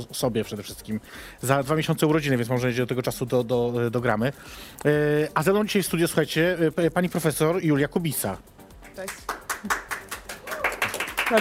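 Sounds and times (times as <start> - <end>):
speech: 0.0 - 9.8
people clapping for arriving guest: 8.8 - 11.3.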